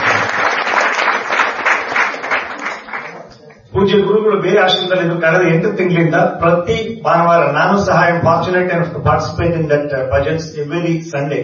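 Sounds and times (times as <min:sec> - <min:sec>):
crowd applause at a devotional gathering: 0:00.0 - 0:03.7
speech: 0:03.8 - 0:11.4.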